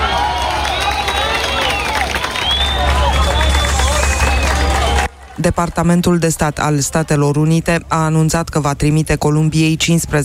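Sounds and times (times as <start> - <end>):
applause and cheering for rescue: 0.0 - 6.2
speech: 5.4 - 10.2.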